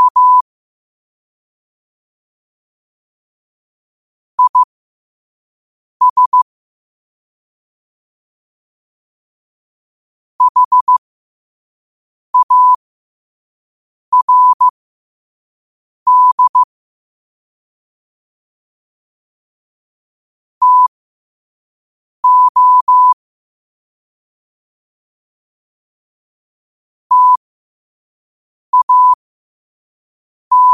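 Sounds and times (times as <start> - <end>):
morse code at 5 wpm: 0.0 - 0.4, 4.4 - 4.7, 6.0 - 6.5, 10.4 - 11.0, 12.4 - 12.8, 14.2 - 14.7, 16.1 - 16.7, 20.6 - 20.9, 22.2 - 23.2, 27.1 - 27.4, 28.7 - 29.2, 30.5 - 30.7.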